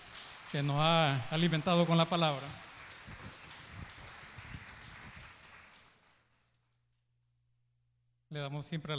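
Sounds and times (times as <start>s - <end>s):
audience applause: 0.0s - 6.5s
speech: 0.5s - 2.6s, 8.4s - 8.9s.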